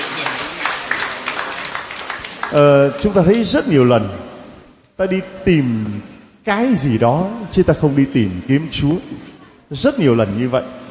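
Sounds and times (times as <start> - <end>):
church congregation applause during a Vietnamese-language service: 0.0 - 3.2
speech: 2.5 - 4.3, 5.0 - 10.8.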